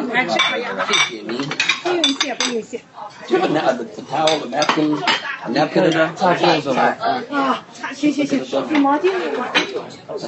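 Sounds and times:
dinner plates being replaced: 0:00.2 - 0:06.8, 0:08.3 - 0:10.0
speech: 0:00.2 - 0:10.2.

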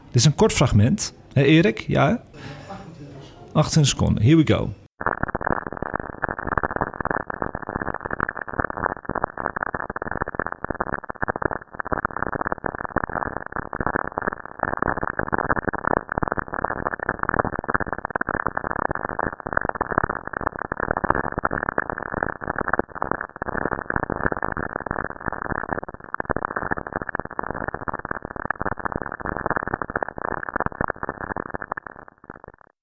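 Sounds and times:
speech: 0:00.2 - 0:02.6, 0:03.6 - 0:05.1
radio static clicks from lightning on Saturn: 0:04.8 - 0:32.7.

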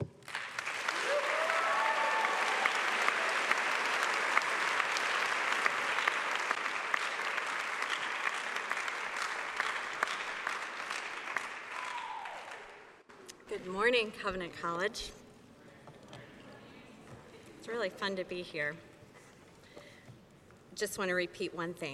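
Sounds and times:
college audience at Covenant College applauding to welcome a guest speaker: 0:00.2 - 0:13.0
speech: 0:13.6 - 0:15.2, 0:17.8 - 0:18.9, 0:20.8 - 0:21.9.

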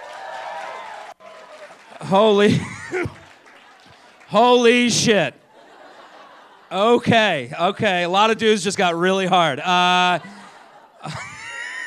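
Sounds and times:
crowd clapping and cheering: 0:00.0 - 0:04.9
speech: 0:02.1 - 0:03.2, 0:04.3 - 0:05.4, 0:06.7 - 0:10.3, 0:11.0 - 0:11.3
laughter: 0:02.3 - 0:07.1, 0:09.8 - 0:11.8.

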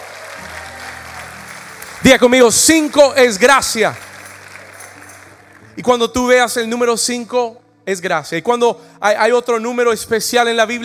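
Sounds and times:
audience applause: 0:00.0 - 0:05.7
speech: 0:02.0 - 0:04.1, 0:05.8 - 0:10.8.

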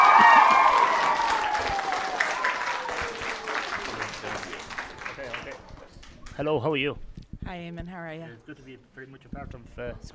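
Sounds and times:
audience applause: 0:00.0 - 0:05.9
speech: 0:06.4 - 0:10.1.

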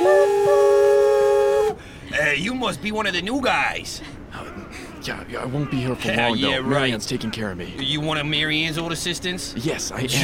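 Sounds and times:
steam whistle: 0:00.0 - 0:01.8
speech: 0:02.4 - 0:10.2.

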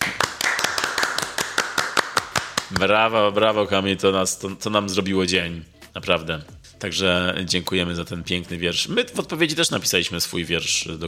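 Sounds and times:
hand claps: 0:00.0 - 0:03.0
speech: 0:02.7 - 0:11.0.

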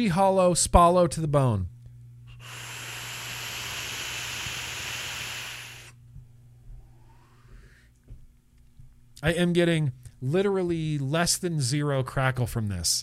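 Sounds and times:
speech: 0:00.0 - 0:01.7, 0:09.2 - 0:13.0
faint hum: 0:00.0 - 0:13.0
airflow through a vape during a long draw: 0:02.3 - 0:06.0.

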